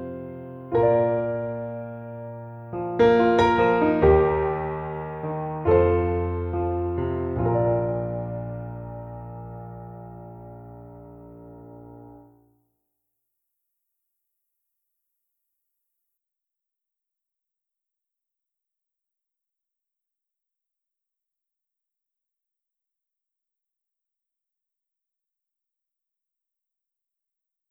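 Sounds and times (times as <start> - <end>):
piano: 0.0 - 12.6.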